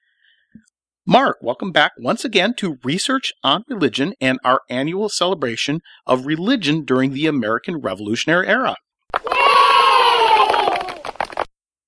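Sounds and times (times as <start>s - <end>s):
speech: 1.1s - 8.8s
elementary school cheer squad children cheering in a studio: 9.1s - 11.5s.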